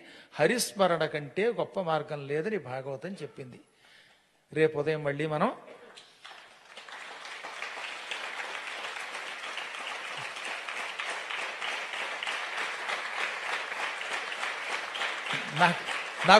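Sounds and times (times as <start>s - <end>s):
speech: 0.4s - 3.7s, 4.5s - 5.8s, 15.6s - 16.3s
audience clapping at the close of a spiritual discourse on the Bhagavatam: 5.9s - 16.3s.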